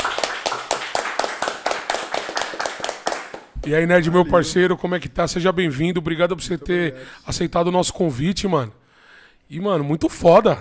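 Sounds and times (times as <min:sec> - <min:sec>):
small group clapping: 0:00.0 - 0:04.0
speech: 0:03.6 - 0:08.8, 0:09.5 - 0:10.5.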